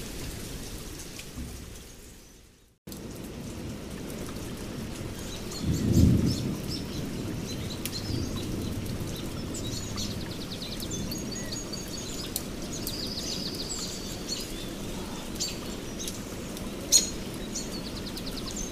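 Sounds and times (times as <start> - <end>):
rain and wind in a stormy forest: 0.0 - 18.7
thunder rolling: 5.4 - 10.4.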